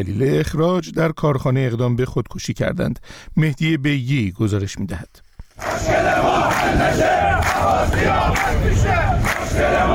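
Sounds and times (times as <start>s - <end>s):
speech: 0.0s - 9.9s
striking Ahvaz National Steel Industrial Group workers chanting in protest: 5.6s - 9.9s.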